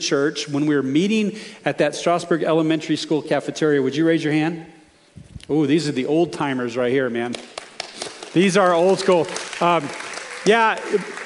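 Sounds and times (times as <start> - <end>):
speech: 0.0 - 4.8, 5.4 - 7.6, 8.4 - 11.2
audience applauding: 7.6 - 11.2.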